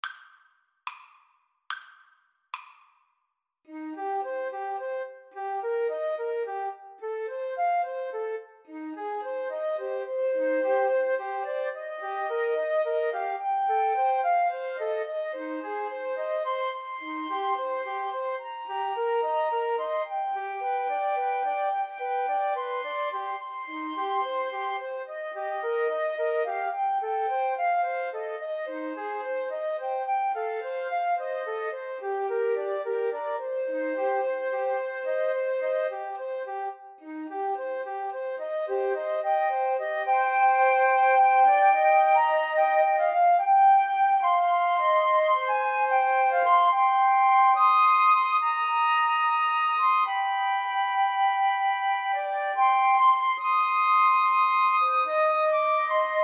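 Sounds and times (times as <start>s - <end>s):
flute trio playing: 3.7s - 56.2s.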